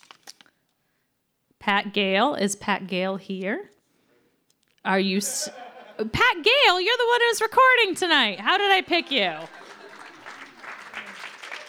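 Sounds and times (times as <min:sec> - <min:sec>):
speech: 0:01.6 - 0:03.8, 0:04.8 - 0:09.6
laughter: 0:04.9 - 0:11.6
audience applause: 0:08.5 - 0:11.6.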